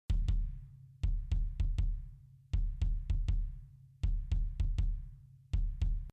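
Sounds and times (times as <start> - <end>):
kick drum: 0.0 - 6.1.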